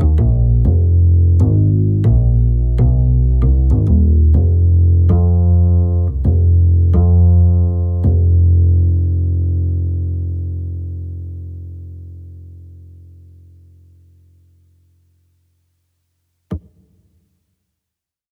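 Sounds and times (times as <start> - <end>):
acoustic bass: 0.0 - 14.6.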